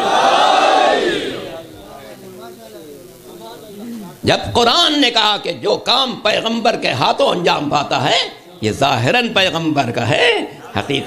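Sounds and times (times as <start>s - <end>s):
large crowd shouting a religious slogan in unison answering a preacher: 0.0s - 1.5s
speech: 4.2s - 11.0s
laughter: 10.5s - 11.0s.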